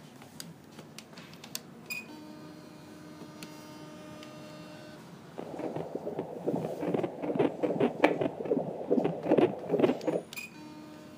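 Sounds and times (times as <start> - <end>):
electronic hum of ultrasound monitor: 5.4 - 10.3
fetal heartbeat on ultrasound monitor: 5.4 - 10.3.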